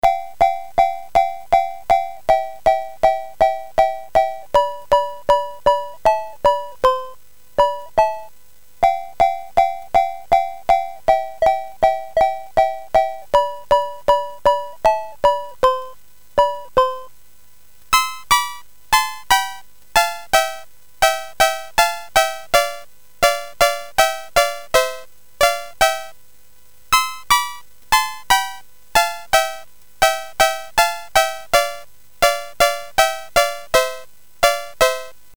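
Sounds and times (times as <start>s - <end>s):
SID CSG8580R5 chip game music: 0.0s - 17.1s, 17.9s - 26.2s, 26.9s - 35.2s.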